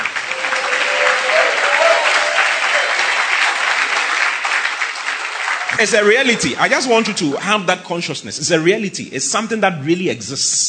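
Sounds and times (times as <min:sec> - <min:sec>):
faint cheers: 0:00.0 - 0:04.2
audience applauding in praise: 0:00.0 - 0:06.5
speech: 0:05.8 - 0:10.6.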